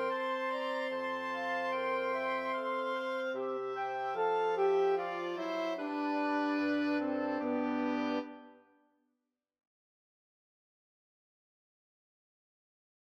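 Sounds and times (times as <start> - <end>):
quintet playing: 0.0 - 8.6.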